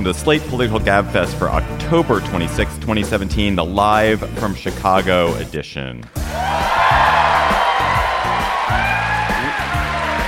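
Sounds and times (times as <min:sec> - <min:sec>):
speech: 0:00.0 - 0:07.1
live theater crowd cheering: 0:06.2 - 0:10.2.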